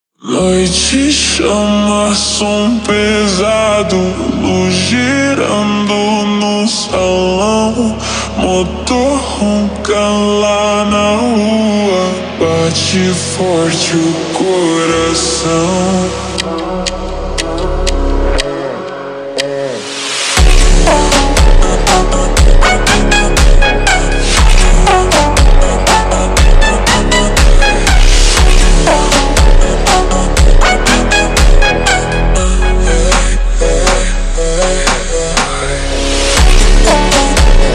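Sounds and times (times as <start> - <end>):
super slowed funk music: 0.3 - 37.7.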